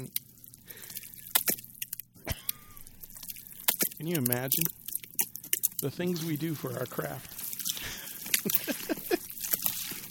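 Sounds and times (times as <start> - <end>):
person wallowing in a tub of jello for a foley recording: 0.0 - 10.1
speech: 4.0 - 4.8, 5.8 - 7.4
laughter: 7.8 - 9.4.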